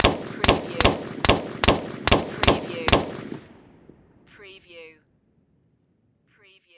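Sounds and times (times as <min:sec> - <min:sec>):
M16 machine gun firing: 0:00.0 - 0:03.8.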